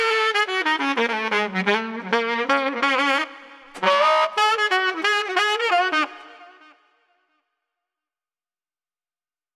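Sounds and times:
upbeat jovial street saxophone playing: 0:00.0 - 0:07.3.

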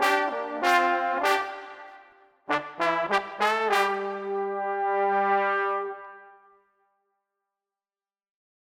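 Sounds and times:
street trombones playing a rolling groove: 0:00.0 - 0:06.2.

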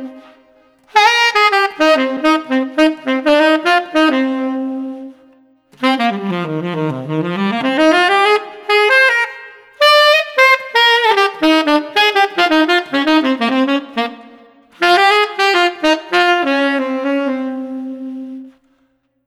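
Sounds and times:
playful street saxophone: 0:00.0 - 0:19.0.

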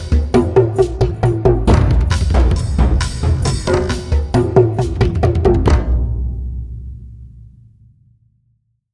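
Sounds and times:
Hawaiian percussion organic funk groove: 0:00.0 - 0:06.6.

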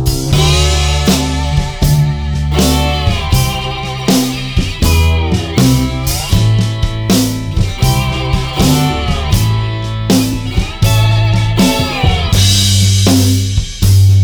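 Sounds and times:
underscore music: 0:00.2 - 0:14.1.

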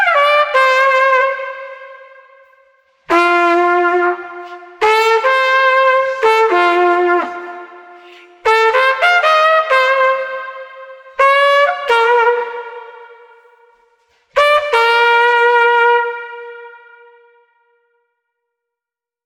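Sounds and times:
street trumpet: 0:00.0 - 0:18.0.

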